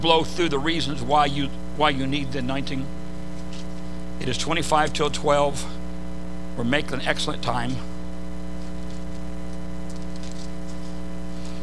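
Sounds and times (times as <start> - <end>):
speech: 0.0 - 3.0, 4.2 - 5.8, 6.6 - 7.9
steady low electrical hum: 0.0 - 11.6
Bible pages rustling and flicking: 3.3 - 4.0, 8.5 - 11.6.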